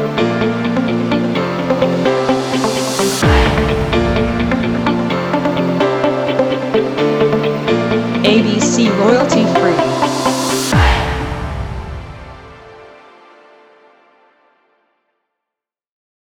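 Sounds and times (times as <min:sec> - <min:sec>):
uplifting EDM: 0:00.1 - 0:13.0.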